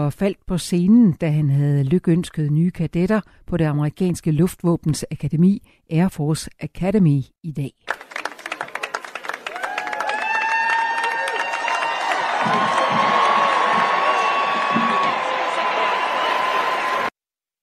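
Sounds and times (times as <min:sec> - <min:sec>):
speech: 0:00.0 - 0:08.0
crowd cheering and clapping at an Air Force Academy graduation ceremony in Colorado Springs: 0:07.9 - 0:17.1.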